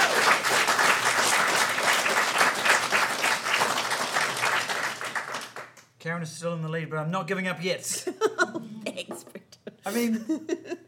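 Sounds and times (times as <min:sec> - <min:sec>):
audience applause: 0:00.0 - 0:05.8
speech: 0:06.0 - 0:10.8.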